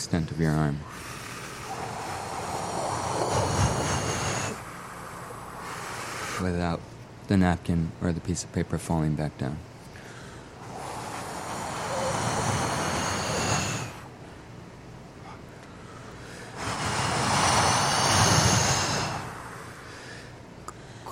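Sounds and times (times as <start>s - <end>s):
speech: 0.0s - 1.0s, 6.4s - 9.7s
long forceful voiceless exhaled breath: 0.8s - 6.5s, 10.0s - 14.1s, 15.3s - 21.0s.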